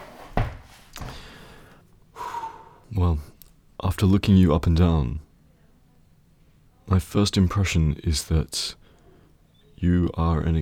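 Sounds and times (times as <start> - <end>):
chair moved beside an examination bed: 0.0 - 1.2
speech: 2.9 - 5.2, 6.9 - 8.8, 9.8 - 10.5.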